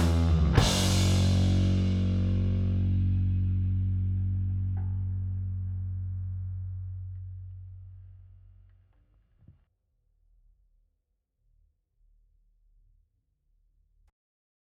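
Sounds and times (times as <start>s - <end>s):
drums: 0.0s - 5.4s
compressed bass line: 0.0s - 8.6s.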